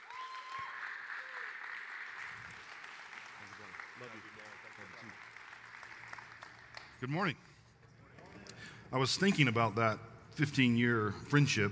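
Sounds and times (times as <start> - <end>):
church congregation applauding a welcomed guest speaker at an Advent service: 0.0 - 7.2
speech: 4.0 - 4.4, 7.0 - 7.5, 8.9 - 11.7.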